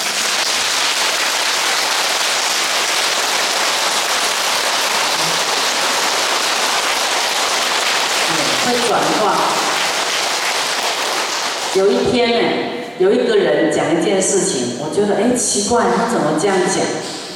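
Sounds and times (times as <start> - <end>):
audience clapping hands: 0.0 - 12.1
speech: 8.9 - 9.6, 11.8 - 17.2.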